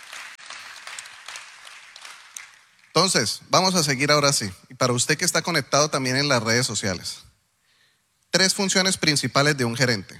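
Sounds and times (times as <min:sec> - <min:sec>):
applause: 0:00.0 - 0:03.3
speech: 0:03.0 - 0:07.3, 0:08.4 - 0:10.1.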